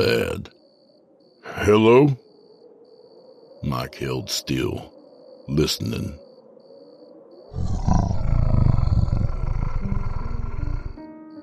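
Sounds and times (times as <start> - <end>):
speech: 0.0 - 0.6, 1.6 - 2.2, 3.6 - 4.9, 5.5 - 6.2, 7.6 - 8.2
strangled half-groan half-growl: 7.5 - 11.0.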